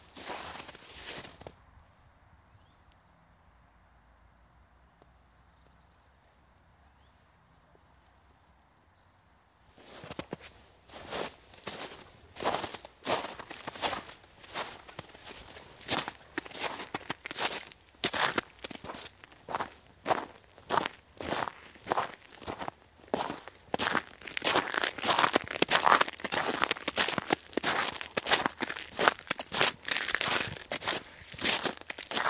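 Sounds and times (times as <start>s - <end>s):
footsteps in the snow in woods near Hebborn in Germany: 0.0s - 1.6s, 9.8s - 32.2s.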